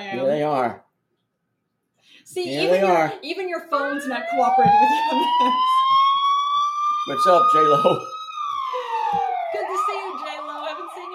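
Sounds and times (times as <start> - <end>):
speech: 0.0 - 0.9, 2.2 - 5.9, 7.1 - 8.1
police siren: 3.7 - 11.1.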